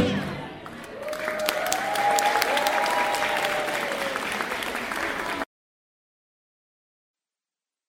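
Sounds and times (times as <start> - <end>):
audience applause: 0.1 - 5.5.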